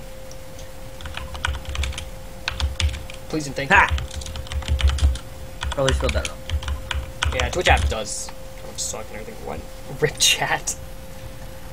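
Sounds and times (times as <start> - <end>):
steady low hum: 0.0 - 11.7
keyboard typing: 1.0 - 8.1
speech: 3.3 - 4.1, 5.8 - 6.4, 7.3 - 10.8.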